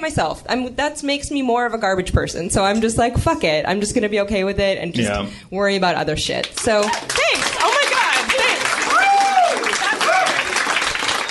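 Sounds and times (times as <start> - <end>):
speech: 0.0 - 7.5
audience applause at a stand-up comedy show: 6.6 - 11.2.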